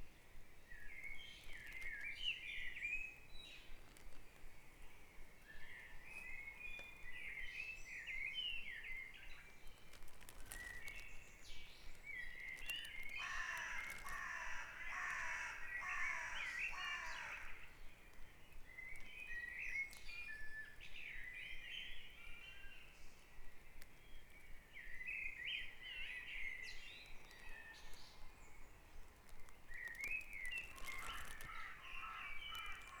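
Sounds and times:
birds chirping and twittering in a dawn chorus: 1.0 - 23.2, 24.1 - 32.9.

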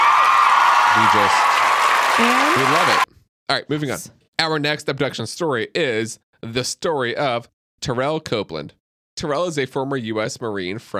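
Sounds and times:
applause of many hands clapping: 0.0 - 3.1
speech: 1.0 - 1.5, 2.2 - 10.9.

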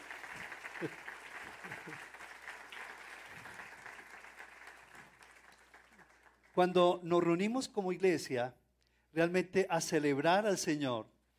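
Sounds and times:
audience applause: 0.0 - 6.6
speech: 0.8 - 2.1, 6.6 - 8.6, 9.2 - 11.1.

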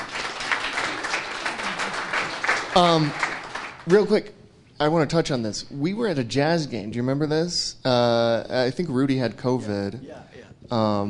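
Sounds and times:
crowd applause: 0.0 - 4.0
speech: 2.8 - 3.2, 3.9 - 11.0
person calling out: 9.5 - 10.6.

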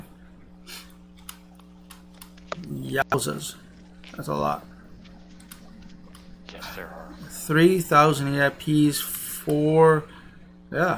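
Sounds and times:
electrical hum: 0.0 - 10.9
computer mouse clicks: 1.2 - 2.7, 5.0 - 6.3
speech: 2.9 - 4.7, 6.8 - 10.1, 10.7 - 10.9.

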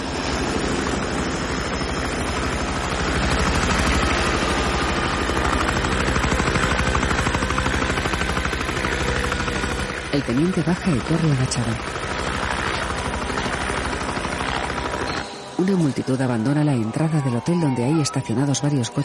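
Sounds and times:
aircraft landing on a vacant lot near a hotel: 0.0 - 15.3
speech: 10.2 - 12.0, 15.6 - 19.0.

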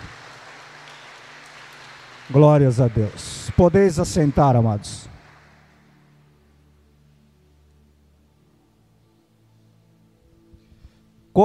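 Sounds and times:
audience applause: 0.0 - 6.4
speech: 2.3 - 5.1.

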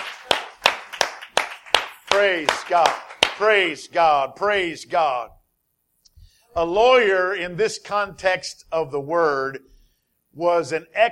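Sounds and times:
audience clapping hands: 0.0 - 3.8
speech: 2.2 - 5.4, 6.6 - 9.7, 10.4 - 11.1.

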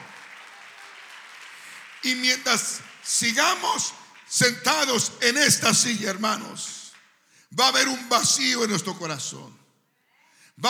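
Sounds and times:
audience applauding: 0.0 - 5.1
speech: 2.0 - 6.8, 7.5 - 9.6.

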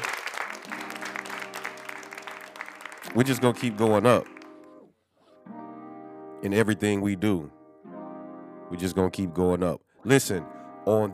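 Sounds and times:
applause: 0.0 - 4.7
speech: 3.1 - 4.4, 6.4 - 7.6, 8.7 - 11.1.

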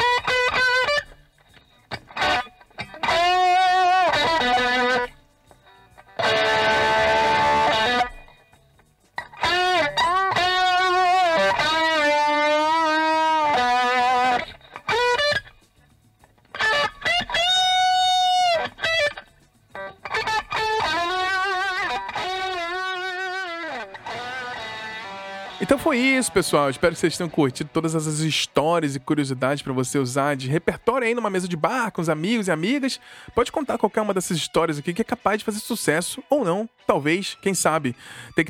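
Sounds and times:
distorted electric guitar with heavy effects: 0.0 - 8.4, 9.2 - 15.6, 16.3 - 35.4
speech: 25.9 - 38.4.

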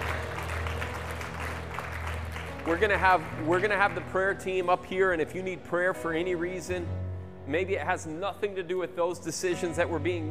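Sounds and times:
audience clapping: 0.0 - 4.7
speech: 2.6 - 10.2.

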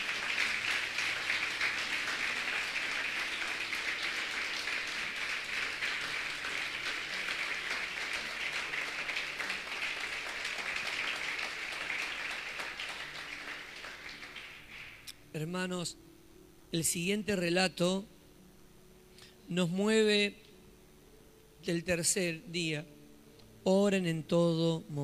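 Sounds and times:
audience applauding: 0.0 - 15.1
speech: 15.4 - 16.1, 16.7 - 18.2, 19.5 - 20.4, 21.6 - 23.0, 23.6 - 25.0.

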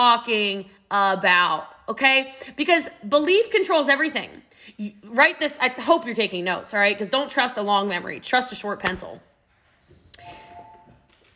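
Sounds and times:
speech: 0.0 - 9.3
doorbell chime: 10.2 - 11.0.

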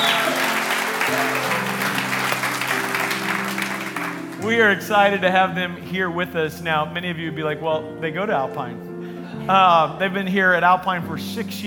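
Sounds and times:
church congregation applause welcoming guests during a service: 0.0 - 5.0
speech: 4.4 - 8.9, 9.5 - 11.6.

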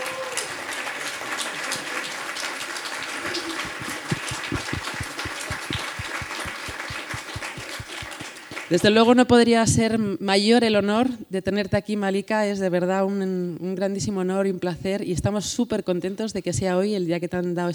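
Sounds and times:
audience applause: 0.0 - 8.7
speech: 8.7 - 17.7.

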